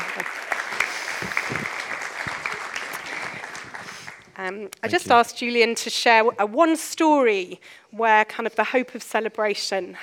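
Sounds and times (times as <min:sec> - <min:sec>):
audience applause welcoming a speaker to the stage: 0:00.0 - 0:05.0
speech: 0:04.4 - 0:10.0.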